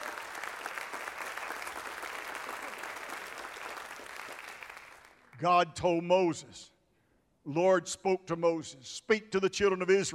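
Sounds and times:
audience applause: 0.0s - 5.2s
speech: 5.4s - 6.7s, 7.4s - 10.1s.

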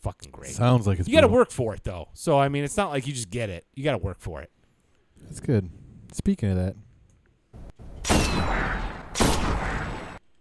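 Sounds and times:
speech: 0.0s - 4.6s, 5.2s - 6.8s
gunfire from a weapon in the video game Destiny: 8.0s - 10.2s.

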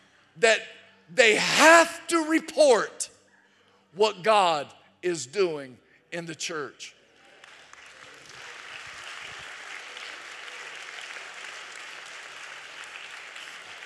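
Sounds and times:
speech: 0.4s - 3.0s, 3.9s - 7.0s
golf clap, quiet polite applause: 7.1s - 13.8s.

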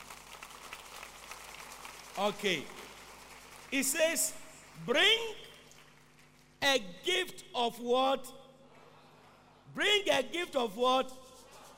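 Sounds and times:
audience clapping: 0.0s - 6.6s
speech: 2.2s - 2.8s, 3.7s - 5.5s, 6.6s - 8.4s, 9.7s - 11.2s.

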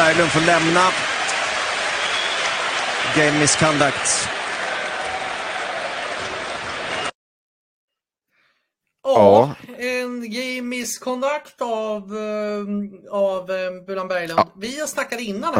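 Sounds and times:
speech: 0.0s - 1.2s, 3.0s - 4.4s, 9.2s - 15.5s
home fans cheering in a hockey arena: 0.0s - 7.2s
announcer voice: 9.1s - 10.1s, 14.2s - 14.6s, 15.4s - 15.5s.

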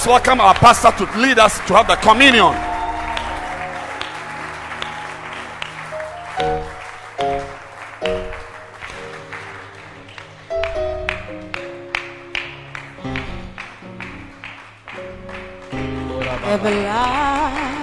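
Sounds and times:
speech: 0.0s - 2.7s
crowd clapping: 0.0s - 17.8s
sustained organ or keyboard chords: 0.0s - 17.8s.

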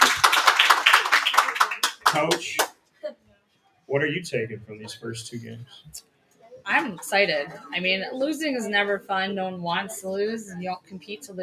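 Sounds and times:
people clapping: 0.0s - 2.8s
speech: 2.1s - 2.7s, 3.9s - 11.4s.

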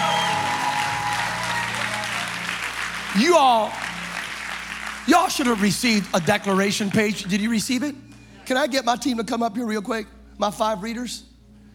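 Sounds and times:
audience clapping: 0.0s - 7.6s
speech: 3.2s - 3.8s, 5.1s - 11.3s.

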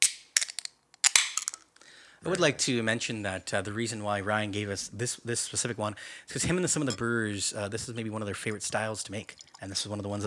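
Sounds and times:
beer can being opened: 0.0s - 1.6s
speech: 2.2s - 10.2s.

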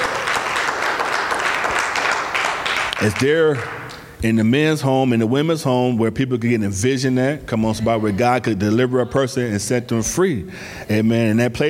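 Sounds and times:
church congregation clapping hands in praise: 0.0s - 4.2s
speech: 3.0s - 11.6s.

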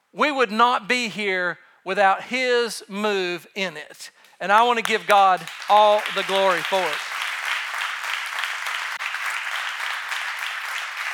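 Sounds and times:
speech: 0.1s - 7.1s
audience applause: 4.8s - 11.1s.

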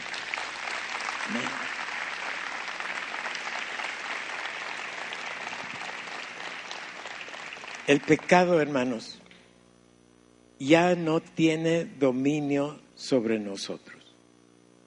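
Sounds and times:
audience applauding: 0.0s - 9.1s
speech: 1.3s - 1.6s, 7.9s - 9.2s, 10.6s - 14.0s.

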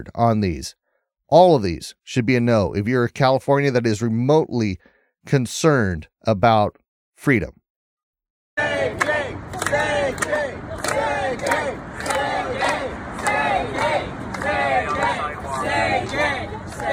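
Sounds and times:
speech: 0.0s - 7.6s
protest crowd at a walkout: 8.6s - 16.9s.

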